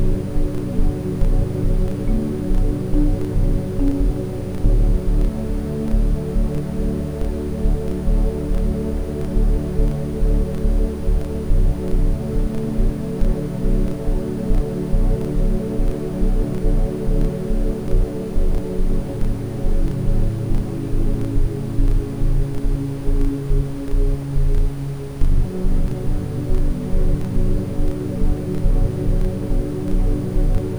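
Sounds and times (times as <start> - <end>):
ambient sound: 0.0 - 30.7
lullaby music: 2.0 - 6.2.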